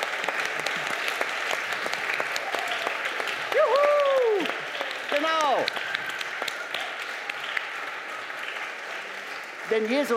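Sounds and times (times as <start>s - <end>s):
group of people clapping: 0.0s - 10.1s
speech: 9.7s - 10.1s.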